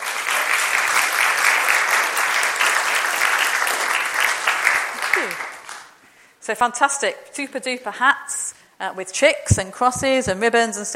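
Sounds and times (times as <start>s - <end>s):
round of applause: 0.0s - 6.0s
speech: 6.5s - 10.9s.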